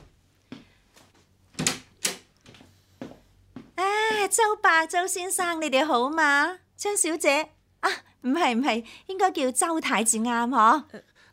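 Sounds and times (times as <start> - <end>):
door being opened: 1.6 - 2.6
speech: 4.2 - 11.1.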